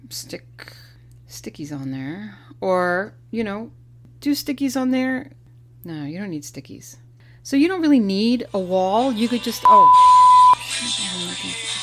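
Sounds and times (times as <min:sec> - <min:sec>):
speech: 0:00.1 - 0:10.2
loud steady electronic beep: 0:09.6 - 0:10.6
cell phone music ringtone: 0:09.7 - 0:10.6.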